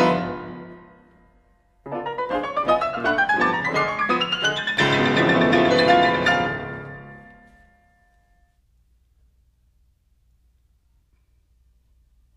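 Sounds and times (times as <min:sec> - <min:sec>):
piano etude in G major: 0:00.0 - 0:08.2.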